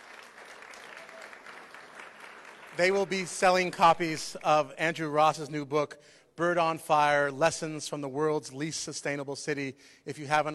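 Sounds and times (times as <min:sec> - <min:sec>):
audience applause: 0:00.0 - 0:03.8
speech: 0:02.8 - 0:10.5.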